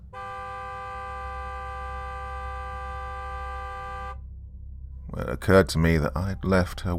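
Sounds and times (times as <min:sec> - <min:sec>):
car horn: 0:00.0 - 0:04.3
speech: 0:05.2 - 0:06.9.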